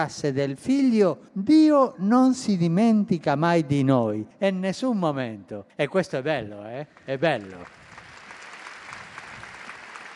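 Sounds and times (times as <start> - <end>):
speech: 0.0 - 7.8
crowd applause: 7.1 - 10.1.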